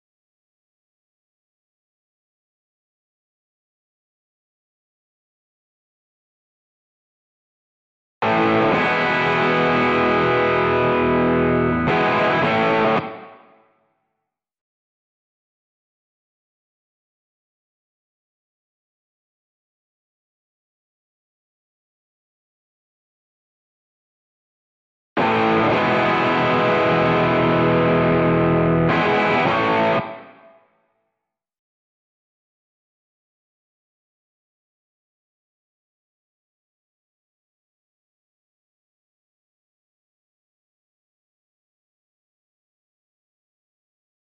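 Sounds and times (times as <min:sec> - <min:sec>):
guitar: 0:08.2 - 0:13.9, 0:25.2 - 0:30.9.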